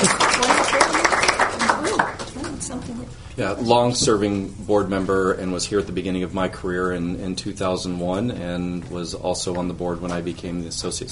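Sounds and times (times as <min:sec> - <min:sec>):
audience applause: 0:00.0 - 0:02.6
speech: 0:03.4 - 0:11.1.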